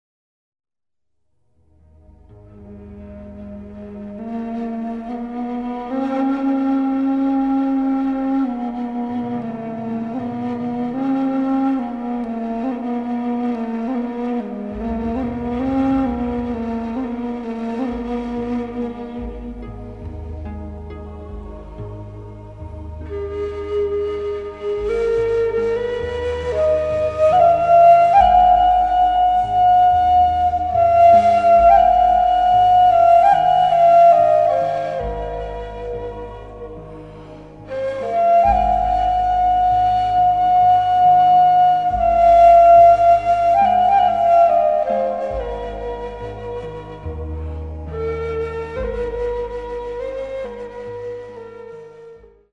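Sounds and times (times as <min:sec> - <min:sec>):
Pharaonic nay flute: 0:02.6 - 0:52.5.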